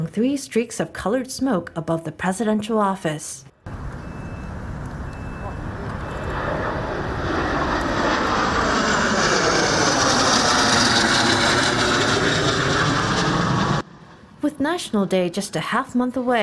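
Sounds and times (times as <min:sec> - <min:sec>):
speech: 0:00.1 - 0:03.5, 0:14.7 - 0:16.4
Thunder Tiger aerobatic jet team flying overhead: 0:03.7 - 0:16.4.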